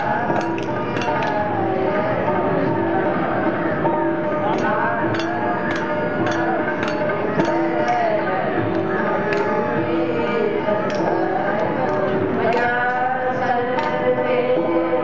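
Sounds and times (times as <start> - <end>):
temple song in Laxman Jhula Rishikesh: 0.0 - 15.0.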